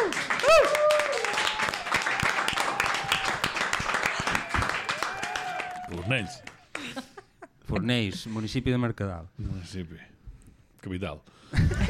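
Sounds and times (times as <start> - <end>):
applause: 0.0 - 7.0
speech: 6.1 - 6.5, 7.7 - 10.1, 10.8 - 11.8.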